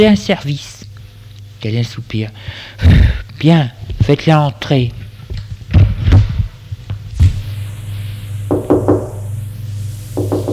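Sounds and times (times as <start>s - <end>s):
speech: 0.0s - 0.8s, 1.6s - 5.0s
steady low hum: 0.0s - 10.5s
knocking on a door: 8.5s - 9.2s, 10.2s - 10.5s.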